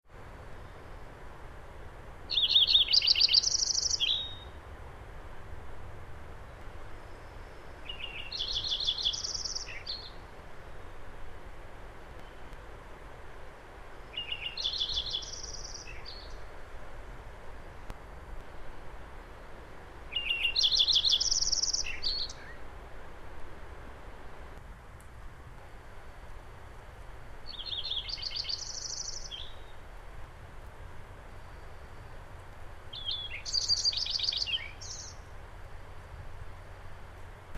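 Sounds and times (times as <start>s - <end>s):
Lincoln's sparrow singing: 2.3s - 4.5s, 7.8s - 10.2s, 14.1s - 16.4s, 20.1s - 22.6s, 27.5s - 29.7s, 32.9s - 35.2s.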